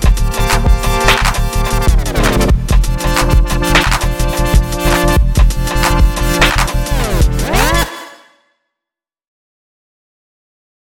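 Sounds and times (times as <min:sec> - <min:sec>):
music beat: 0:00.0 - 0:07.9.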